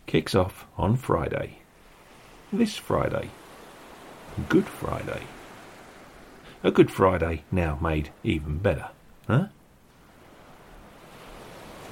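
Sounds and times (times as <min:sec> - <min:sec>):
ocean waves: 0:00.0 - 0:11.9
speech: 0:00.1 - 0:01.6, 0:02.5 - 0:03.4, 0:04.4 - 0:05.4, 0:06.6 - 0:09.6.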